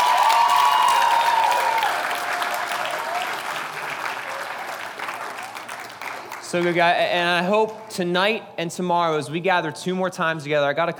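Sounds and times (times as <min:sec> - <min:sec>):
audience applause: 0:00.0 - 0:06.9
speech: 0:06.5 - 0:10.9.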